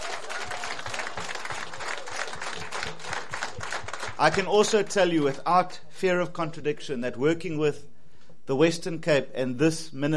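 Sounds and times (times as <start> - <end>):
round of applause: 0.0 - 5.4
speech: 4.2 - 7.9, 8.5 - 10.1.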